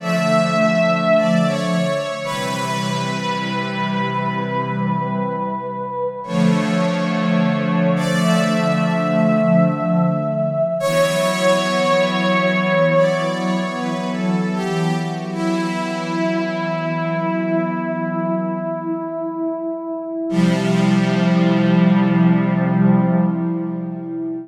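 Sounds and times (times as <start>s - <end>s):
keyboard: 0.0s - 24.4s.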